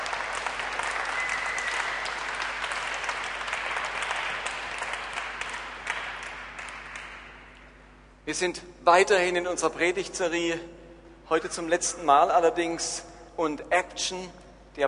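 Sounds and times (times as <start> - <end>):
audience applause: 0.0 - 7.5
speech: 8.3 - 14.8.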